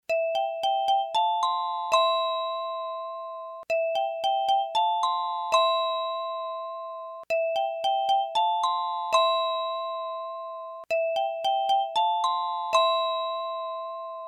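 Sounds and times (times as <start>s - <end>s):
jingle: 0.1s - 14.2s.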